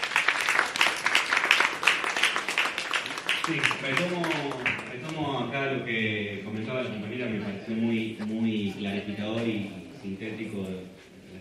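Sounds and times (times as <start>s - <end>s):
audience applause: 0.0s - 5.2s
speech: 3.5s - 11.3s.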